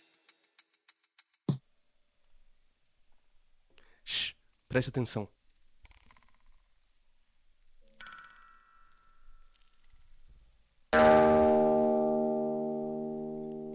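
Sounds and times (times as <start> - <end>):
speech: 4.7 - 5.4
snow falling on an outdoor plugged-in electric guitar: 11.0 - 13.7.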